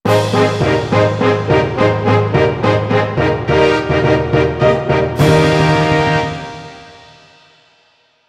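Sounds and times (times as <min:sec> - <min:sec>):
player fanfare: 0:00.1 - 0:07.6.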